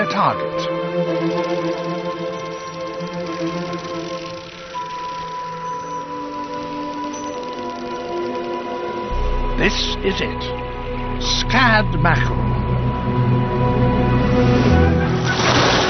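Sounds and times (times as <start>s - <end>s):
speech: 0.2s - 2.4s, 9.6s - 10.6s, 11.2s - 12.5s
sustained tonal hums and drones: 0.4s - 15.8s
dolphin sonar echolocation clicks: 1.3s - 9.0s.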